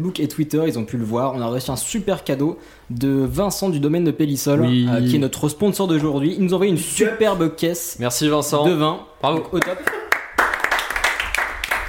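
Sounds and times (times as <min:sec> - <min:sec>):
speech: 0:00.0 - 0:10.0
hands clapping: 0:09.3 - 0:11.8.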